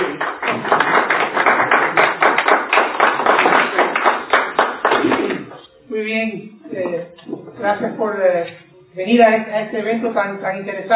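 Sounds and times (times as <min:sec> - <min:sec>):
audience applause: 0:00.0 - 0:05.6
speech: 0:06.0 - 0:10.9.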